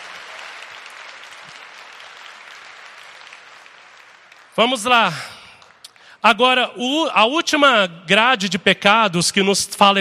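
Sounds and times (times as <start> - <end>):
audience applause: 0.0 - 6.1
speech: 4.6 - 5.3, 6.2 - 10.0.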